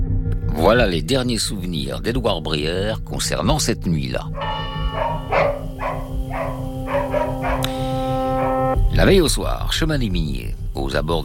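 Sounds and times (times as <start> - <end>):
speech: 0.6 - 4.7, 9.0 - 11.2
dogs barking: 4.2 - 8.8
steady low hum: 4.4 - 9.0.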